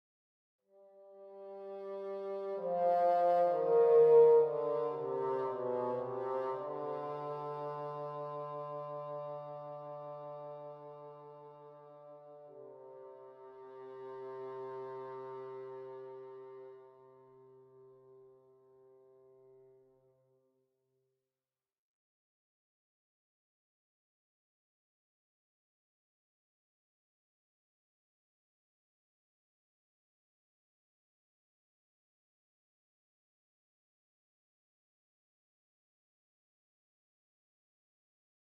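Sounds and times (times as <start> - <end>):
negative game over bassoon stinger: 0.8 - 19.6.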